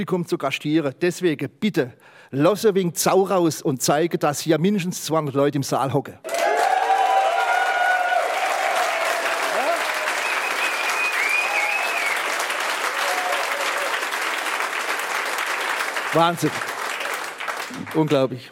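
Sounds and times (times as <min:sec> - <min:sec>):
speech: 0:00.0 - 0:06.4, 0:16.2 - 0:16.7, 0:17.8 - 0:18.5
large crowd applause: 0:06.2 - 0:18.4
whoops and high-pitched whistles: 0:09.9 - 0:12.4.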